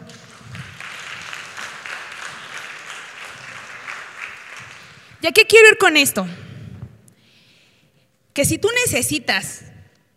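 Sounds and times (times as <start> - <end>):
audience applause: 0.0 - 5.2
speech: 5.2 - 6.4, 8.4 - 9.7.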